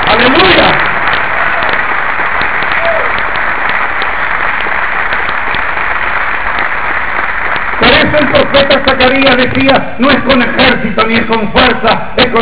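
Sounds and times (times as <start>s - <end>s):
audience applause: 0.0s - 10.5s
speech: 8.2s - 12.3s.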